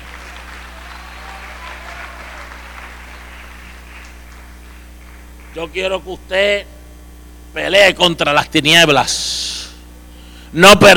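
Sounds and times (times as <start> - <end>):
audience applauding: 0.0 - 5.6
speech: 5.5 - 6.8, 7.6 - 9.6, 10.5 - 10.9.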